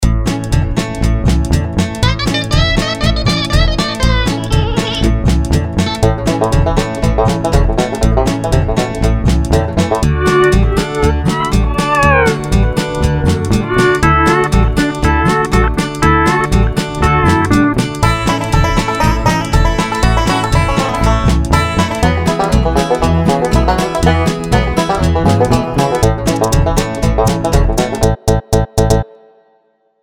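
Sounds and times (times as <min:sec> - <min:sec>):
alternative music mix: 0:00.0 - 0:29.4.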